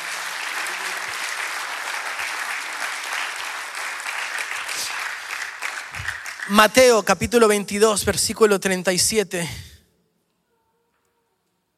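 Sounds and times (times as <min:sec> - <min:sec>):
large audience applause: 0:00.0 - 0:07.0
speech: 0:06.5 - 0:09.7.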